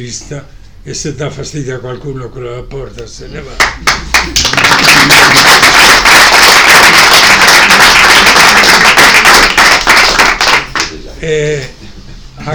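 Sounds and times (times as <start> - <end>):
speech: 0.0 - 7.8, 11.2 - 11.8
audience applause during a speech: 3.8 - 10.9.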